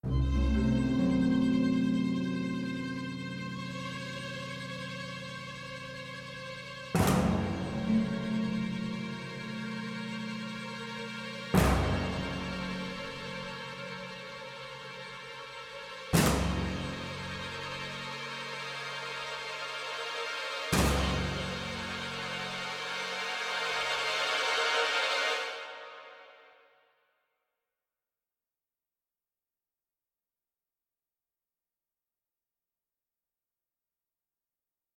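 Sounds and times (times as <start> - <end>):
tension music: 0.0 - 26.0.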